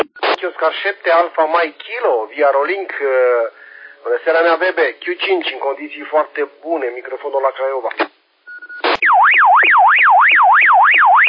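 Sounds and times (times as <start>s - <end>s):
speech: 0.4s - 8.1s
Dacia car alarm: 9.0s - 11.2s.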